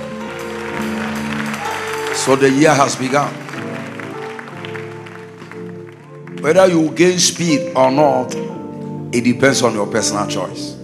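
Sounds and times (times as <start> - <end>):
audience clapping hands: 0.0 - 7.8
speech: 2.2 - 3.4, 6.4 - 10.8.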